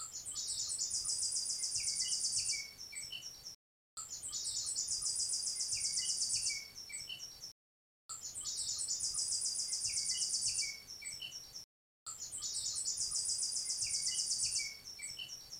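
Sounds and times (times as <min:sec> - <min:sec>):
American robin Turdus migratorius singing: 0:00.0 - 0:07.5, 0:08.2 - 0:15.5.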